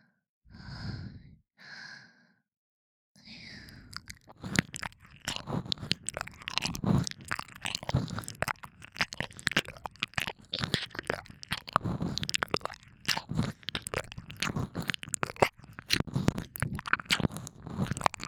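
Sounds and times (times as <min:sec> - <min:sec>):
ear licking ASMR while lying beside the listener: 0:03.7 - 0:18.2.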